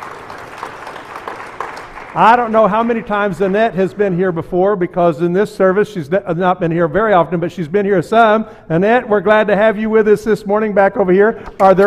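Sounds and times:
audience clapping hands: 0.0 - 4.6, 11.5 - 11.8
speech: 2.1 - 11.8.

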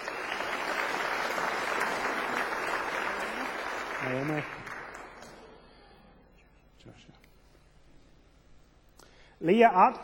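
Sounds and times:
crowd applause: 0.0 - 5.6
speech: 4.1 - 4.7, 9.4 - 10.0.

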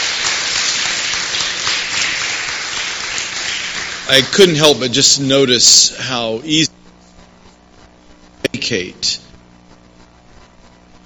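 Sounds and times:
audience clapping: 0.0 - 5.2
speech: 4.1 - 6.7, 8.7 - 9.3.

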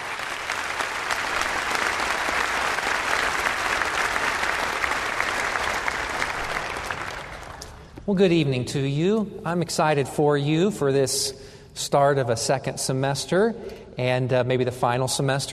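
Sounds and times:
audience applause welcoming a preacher to the pulpit: 0.0 - 8.0
speech: 8.1 - 15.5.

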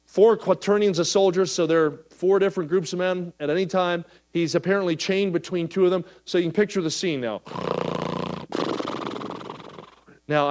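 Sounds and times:
speech: 0.2 - 7.8, 10.3 - 10.4
person imitating snoring: 7.4 - 10.1.

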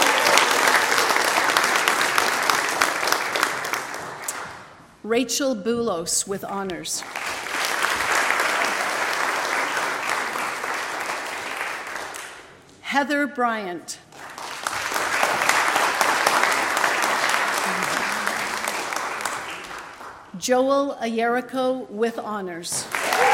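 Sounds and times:
audience applause: 0.0 - 4.6, 7.0 - 12.4, 14.2 - 20.2, 22.8 - 23.3
speech: 5.1 - 7.4, 12.9 - 14.0, 20.4 - 23.0.

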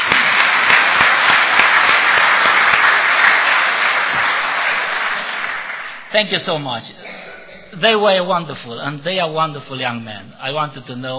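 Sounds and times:
audience applause in church: 0.0 - 6.1
speech: 6.1 - 7.0, 7.7 - 11.1.

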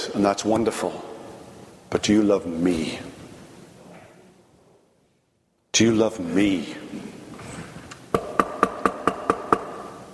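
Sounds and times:
speech: 0.2 - 1.1, 1.9 - 3.2, 5.8 - 7.1
knocking on a door: 8.2 - 9.7.

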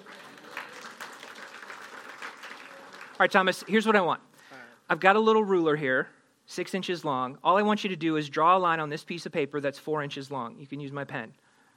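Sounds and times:
audience applause for volunteer: 0.0 - 3.9
speech: 3.2 - 4.3, 4.9 - 11.4.

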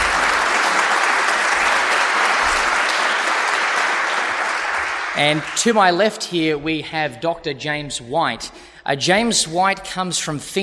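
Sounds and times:
audience applause: 0.0 - 6.1
speech: 5.2 - 10.6.

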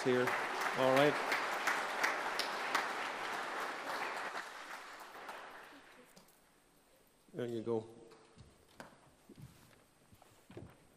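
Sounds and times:
speech: 0.0 - 1.4, 7.4 - 8.0
audience applause: 0.0 - 6.0.

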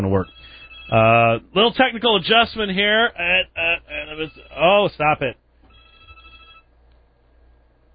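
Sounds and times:
speech: 0.1 - 5.4
cell phone ringtone from a forwarded line: 0.2 - 1.0, 4.0 - 4.7, 5.7 - 6.7.

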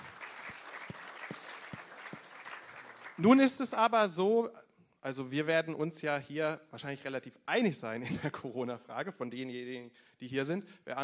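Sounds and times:
audience clapping: 0.0 - 3.8
speech: 3.2 - 11.0.

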